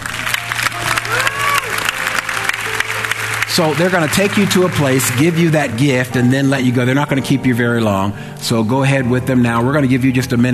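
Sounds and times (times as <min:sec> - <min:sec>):
audience clapping: 0:00.0 - 0:06.1
speech: 0:03.5 - 0:10.5.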